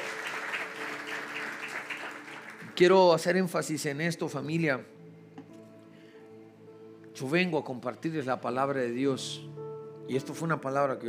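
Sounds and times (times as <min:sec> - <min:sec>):
loud crowd applause: 0:00.0 - 0:02.9
speech: 0:02.8 - 0:05.0, 0:07.2 - 0:09.5, 0:10.1 - 0:11.0.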